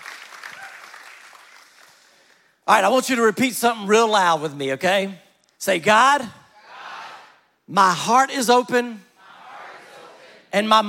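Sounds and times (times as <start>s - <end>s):
audience clapping: 0.0s - 2.5s
speech: 2.7s - 6.4s, 7.7s - 9.1s, 10.5s - 10.8s.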